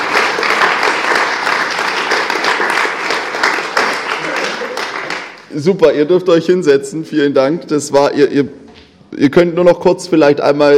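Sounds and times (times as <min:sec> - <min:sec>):
crowd applauding: 0:00.0 - 0:05.5
speech: 0:05.5 - 0:10.7.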